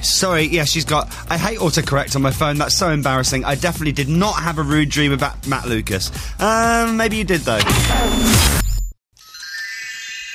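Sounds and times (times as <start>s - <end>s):
speech: 0.0s - 8.6s
toy magic wand chiming with electronic tones: 9.2s - 10.3s.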